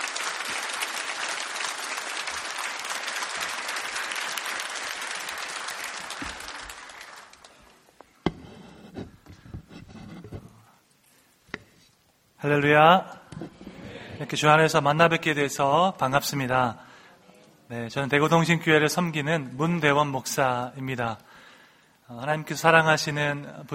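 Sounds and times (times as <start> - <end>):
large crowd clapping: 0.0 - 7.8
speech: 12.4 - 13.2, 14.2 - 16.9, 17.7 - 21.3, 22.1 - 23.7.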